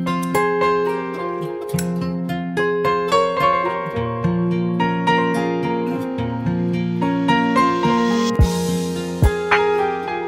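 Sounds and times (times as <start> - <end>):
sad piano piece: 0.1 - 10.2.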